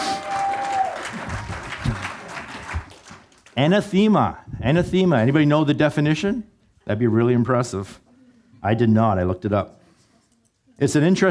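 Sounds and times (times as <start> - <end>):
audience applause: 0.0 - 3.6
speech: 3.6 - 8.0, 8.6 - 9.8, 10.8 - 11.2.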